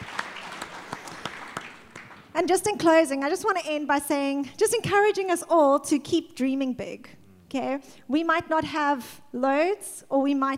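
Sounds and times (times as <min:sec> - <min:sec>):
round of applause: 0:00.0 - 0:02.3
speech: 0:02.4 - 0:10.5.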